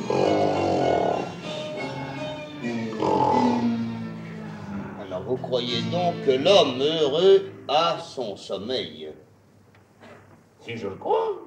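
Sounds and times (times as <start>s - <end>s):
man imitating loud snoring with his voice: 0.0s - 1.3s, 2.6s - 3.9s
speech: 5.3s - 9.0s, 10.6s - 11.4s.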